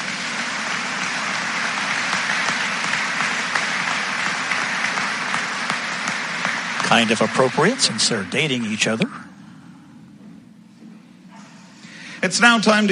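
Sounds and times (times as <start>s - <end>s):
crowd clapping: 0.0s - 9.0s
speech: 6.9s - 9.2s, 12.3s - 12.9s.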